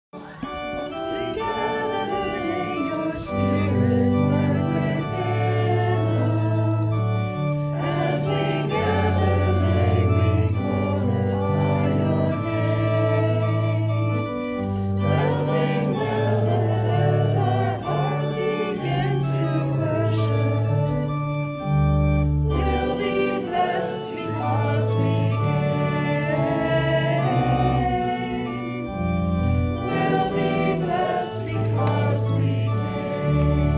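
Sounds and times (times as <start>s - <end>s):
hymn: 0.2s - 33.7s.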